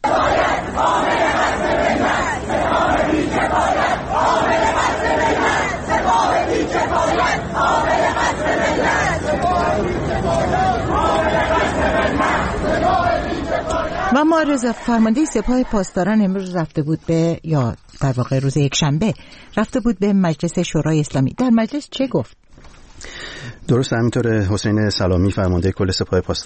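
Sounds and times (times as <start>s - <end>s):
students chanting slogans at universities in Tehran: 0.0s - 16.0s
speech: 14.3s - 26.4s.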